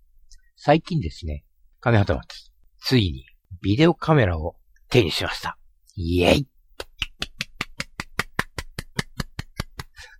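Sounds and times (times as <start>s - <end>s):
speech: 0.6s - 6.5s
one person clapping: 6.8s - 9.9s.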